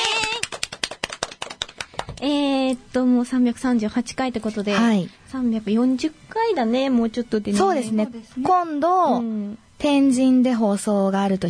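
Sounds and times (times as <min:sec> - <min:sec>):
studio applause: 0:00.0 - 0:02.2
speech: 0:02.2 - 0:11.4.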